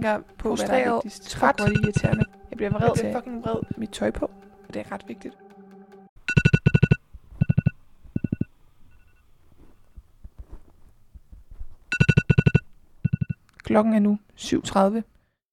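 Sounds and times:
speech: 0.0s - 5.4s, 13.7s - 15.1s
morning alarm ringing: 0.9s - 9.2s, 11.9s - 13.4s.

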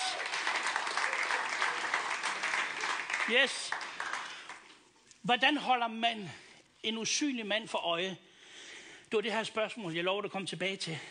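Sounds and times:
crowd clapping: 0.0s - 4.8s
speech: 3.3s - 3.9s, 5.2s - 8.3s, 9.1s - 11.0s.

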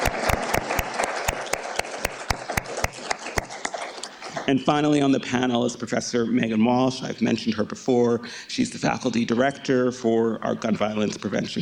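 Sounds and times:
audience applause: 0.0s - 4.5s
speech: 4.5s - 11.6s.

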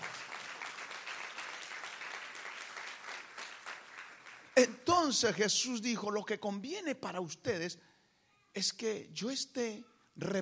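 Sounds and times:
audience applauding: 0.0s - 4.7s
speech: 4.6s - 7.9s, 8.6s - 10.4s.

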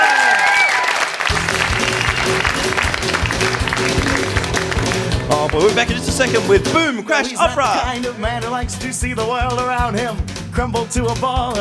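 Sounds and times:
live comedy audience applauding at the 1993 Melbourne Comedy Festival: 0.0s - 6.7s
music playing: 1.3s - 11.5s
speech: 5.6s - 11.5s.

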